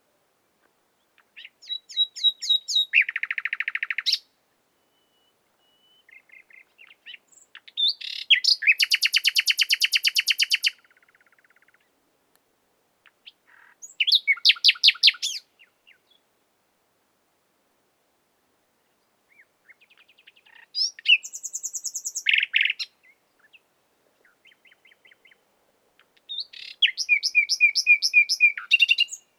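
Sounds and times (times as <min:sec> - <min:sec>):
common nightingale Luscinia megarhynchos singing: 0:01.0 - 0:12.0, 0:13.0 - 0:16.3, 0:18.8 - 0:29.3.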